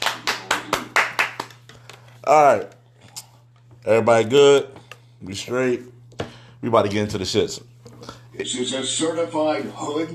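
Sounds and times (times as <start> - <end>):
rhythmic hand claps: 0.0 - 1.7
speech: 2.3 - 2.8, 3.8 - 6.0, 6.6 - 10.1.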